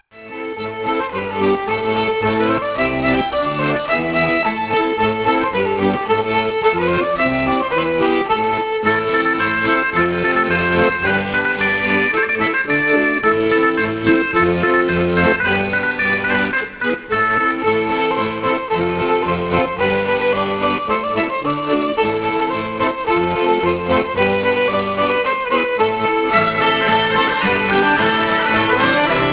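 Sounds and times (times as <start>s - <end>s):
schottische folk dance music: 0.0s - 29.3s.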